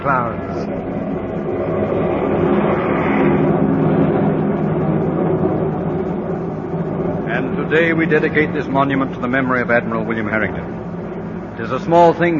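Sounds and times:
speech: 0.0 - 0.8, 7.4 - 10.8, 11.6 - 12.3
fleet of airplanes flying overhead in battle formation: 0.0 - 12.3.

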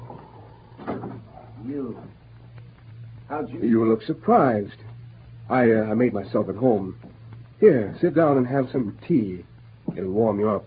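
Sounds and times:
door being shut: 0.8 - 1.3
speech: 1.6 - 2.2, 3.3 - 4.9, 5.5 - 10.6.

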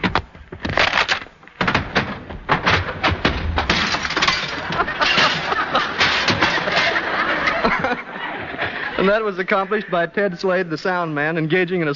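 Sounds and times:
clattering crashes: 0.7 - 8.0
staged fight thuds and bangs: 1.5 - 7.0
smashing glass: 2.6 - 7.0
laughter: 4.5 - 10.4
speech: 9.0 - 11.9.

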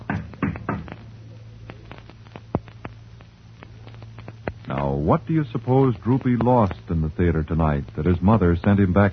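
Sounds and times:
firm knocking on a door: 0.0 - 1.0
low hum: 0.0 - 9.1
speech: 5.0 - 9.1.

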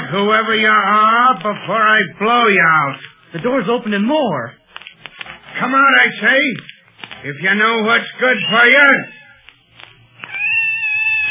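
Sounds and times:
speech: 0.1 - 4.6, 5.6 - 9.2
scared cat meowing in a closet: 8.4 - 9.6, 10.2 - 11.2.

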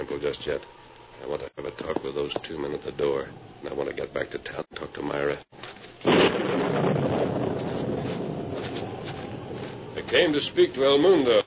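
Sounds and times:
speech: 0.0 - 7.0, 10.1 - 11.4
thunderclap in an electric storm: 6.0 - 10.0
rolling roar of thunder and storm noise: 6.0 - 10.5.

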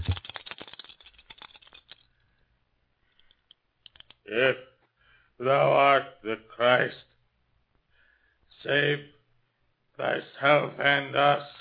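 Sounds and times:
dice being shaken and cast: 0.0 - 2.1
speech: 4.3 - 4.7, 5.4 - 7.1, 8.6 - 9.1, 10.0 - 11.5.

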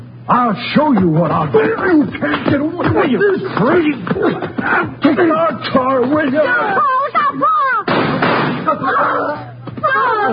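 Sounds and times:
speech: 0.3 - 8.0, 8.7 - 10.3
agitated voices shouting: 0.7 - 7.9, 8.6 - 10.3
laughter: 1.4 - 7.9, 8.6 - 10.3
gunshot: 7.9 - 8.7.

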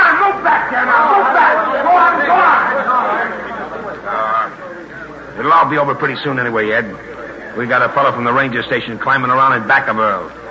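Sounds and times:
restless crowd: 0.0 - 10.4
speech: 5.5 - 10.4.

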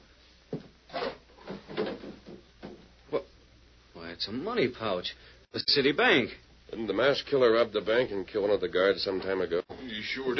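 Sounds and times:
wooden table drawer being pulled open: 0.9 - 2.0
speech: 4.2 - 10.3.

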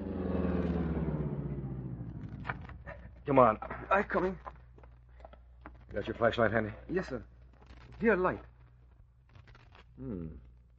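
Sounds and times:
car engine rumbling as the car pulls over and stops: 0.0 - 3.7
speech: 3.3 - 4.5, 5.9 - 7.3, 8.0 - 8.5, 10.0 - 10.4.

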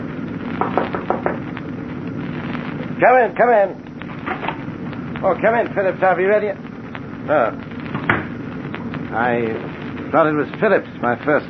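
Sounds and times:
knocking on a cabin door: 0.6 - 1.4
speech: 3.0 - 4.4, 5.2 - 6.6, 7.2 - 7.7, 9.1 - 11.4.

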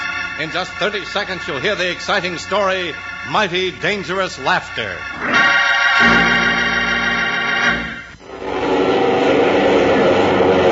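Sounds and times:
United Airlines DC-7 Mainliner airliner engines droning ready for takeoff: 0.0 - 10.7
speech: 0.4 - 6.3.

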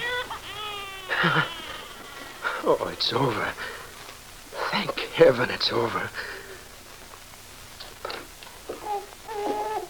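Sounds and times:
newborn baby's muffled wailing in a radio drama: 0.0 - 2.7, 8.7 - 9.8
speech: 1.2 - 1.6, 2.6 - 3.8, 4.7 - 6.4.

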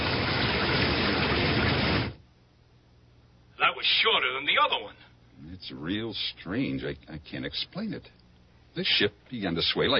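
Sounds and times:
rain falling: 0.0 - 2.2
speech: 3.8 - 8.2, 8.8 - 9.9.

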